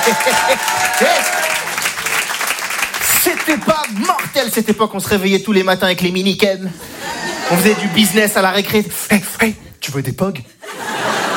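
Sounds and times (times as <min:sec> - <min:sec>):
laughter: 0:00.0 - 0:01.4, 0:06.8 - 0:08.4, 0:10.6 - 0:11.3
audience applause: 0:00.0 - 0:04.4
speech: 0:00.1 - 0:01.8, 0:03.2 - 0:10.5.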